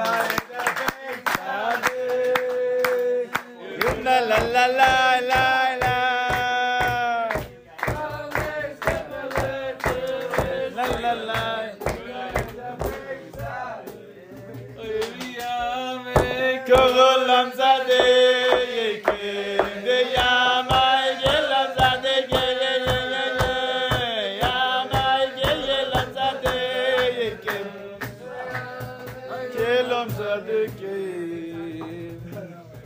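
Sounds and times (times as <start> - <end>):
crowd clapping rhythmically: 0.0 - 32.4.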